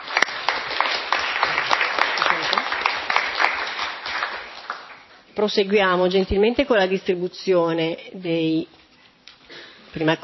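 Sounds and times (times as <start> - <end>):
audience applause: 0.0 - 5.1
speech: 5.4 - 8.8, 10.0 - 10.2.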